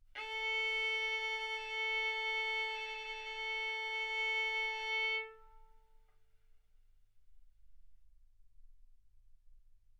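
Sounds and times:
violin bowed arco notes: 0:00.2 - 0:05.8.

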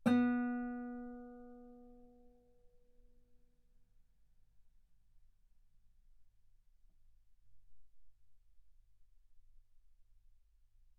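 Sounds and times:
guitar note B3: 0:00.0 - 0:01.8.

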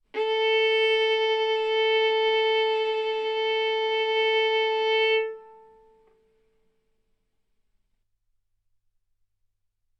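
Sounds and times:
violin bowed arco notes: 0:00.1 - 0:06.2.

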